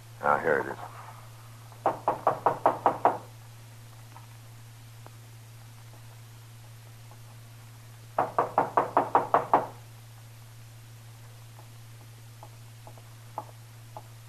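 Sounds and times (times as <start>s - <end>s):
low steady hum: 0.0s - 14.2s
speech: 0.2s - 1.0s
brisk knocking on a door: 1.8s - 3.3s, 8.2s - 9.8s.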